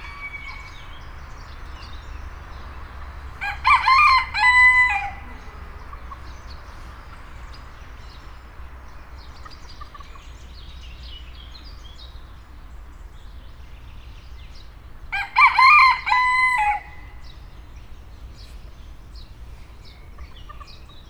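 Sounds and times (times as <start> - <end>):
rooster crowing: 0.0 - 1.5, 3.3 - 6.2, 15.1 - 17.3.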